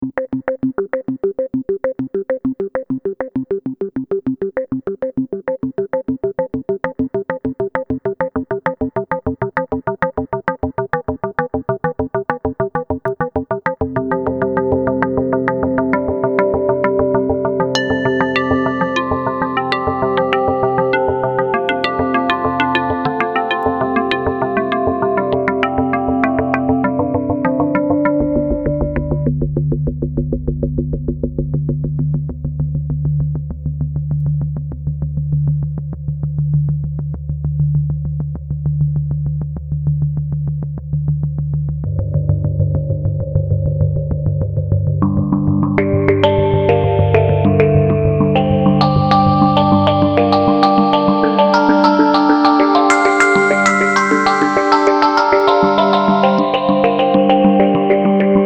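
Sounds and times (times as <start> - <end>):
noise arpeggio: 0.0 - 37.1, 40.4 - 58.4
FM synth: 0.0 - 58.4.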